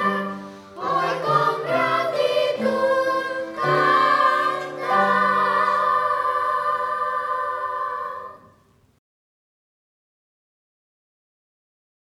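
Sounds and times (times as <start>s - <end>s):
children's choir singing: 0.0s - 8.6s.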